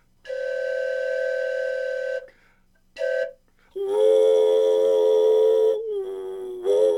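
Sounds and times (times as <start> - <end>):
railroad locomotive whistle signals: 0.3 - 2.4, 3.0 - 3.4, 4.0 - 5.8.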